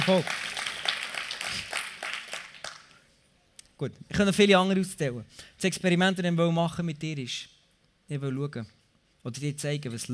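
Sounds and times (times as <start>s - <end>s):
speech: 0.0s - 0.6s, 3.8s - 7.5s, 8.1s - 10.1s
several people clapping: 0.0s - 3.0s.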